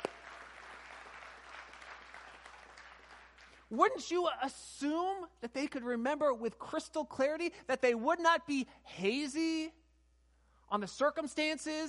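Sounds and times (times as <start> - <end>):
audience clapping: 0.0 - 3.7
speech: 3.7 - 9.8, 10.7 - 11.8.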